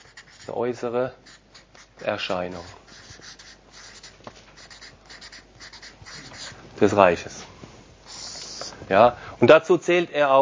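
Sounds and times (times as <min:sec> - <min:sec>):
pen scratching while writing a word by hand: 0:00.0 - 0:06.6
speech: 0:00.5 - 0:01.3, 0:02.0 - 0:02.8, 0:06.8 - 0:07.4, 0:08.9 - 0:10.4.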